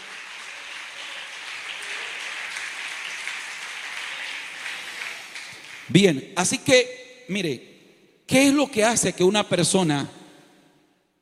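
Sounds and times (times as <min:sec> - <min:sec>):
audience applauding: 0:00.0 - 0:06.0
speech: 0:05.9 - 0:07.7, 0:08.3 - 0:10.2.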